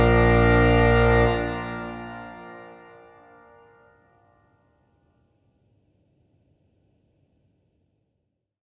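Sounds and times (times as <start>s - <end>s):
organist improvising in rondo form: 0.0s - 3.9s.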